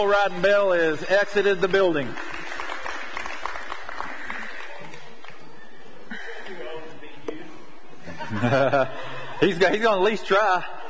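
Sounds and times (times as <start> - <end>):
speech: 0.0 - 2.3, 8.3 - 10.8
audience clapping: 0.0 - 5.6
laughter: 5.9 - 7.0, 7.9 - 10.8.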